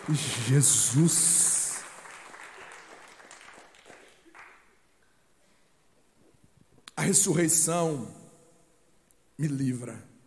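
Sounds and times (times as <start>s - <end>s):
audience applauding: 0.0s - 4.8s
speech: 0.1s - 1.4s, 7.0s - 8.2s, 9.4s - 10.1s.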